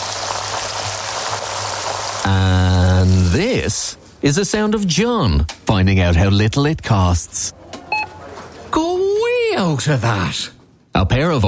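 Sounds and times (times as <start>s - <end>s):
pair of 32-day matured sirloin steaks frying in pure Irish butter: 0.0s - 3.4s
speech: 2.3s - 7.6s, 9.6s - 11.4s.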